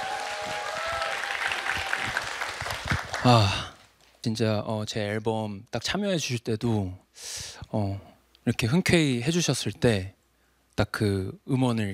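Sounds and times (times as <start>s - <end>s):
audience applause: 0.0s - 3.7s
speech: 3.2s - 10.2s, 10.8s - 11.9s.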